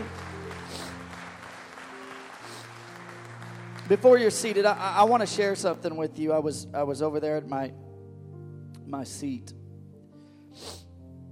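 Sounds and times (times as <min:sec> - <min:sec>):
audience clapping: 0:00.0 - 0:05.8
sustained low organ or keyboard chords: 0:00.0 - 0:10.4
speech: 0:03.9 - 0:07.9, 0:08.9 - 0:09.6.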